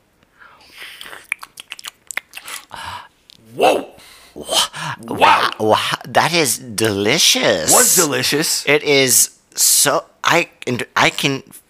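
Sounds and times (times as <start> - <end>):
biting and chewing acai berry power food: 1.0 - 2.7
speech: 5.0 - 11.6.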